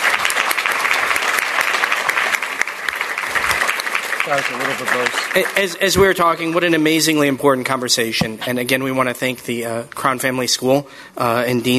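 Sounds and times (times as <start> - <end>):
audience applause: 0.0 - 6.5
speech: 4.3 - 11.7.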